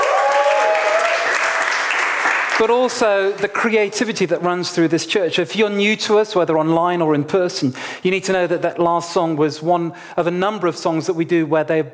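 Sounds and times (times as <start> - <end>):
whoop: 0.0 - 1.6
people clapping for a church creative team: 0.0 - 3.6
speech: 2.6 - 11.9.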